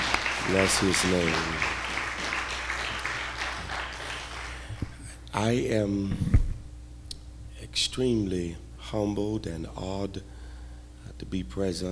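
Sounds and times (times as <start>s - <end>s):
audience clapping hands: 0.0s - 4.8s
speech: 0.5s - 1.8s, 5.4s - 6.4s, 7.8s - 10.3s, 11.3s - 11.9s.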